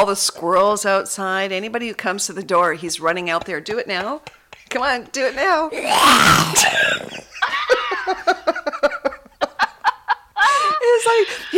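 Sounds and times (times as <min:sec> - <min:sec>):
speech: 0:00.0 - 0:08.6, 0:11.0 - 0:11.5
man imitating zombie sounds: 0:05.7 - 0:07.3
laughter: 0:06.8 - 0:11.5.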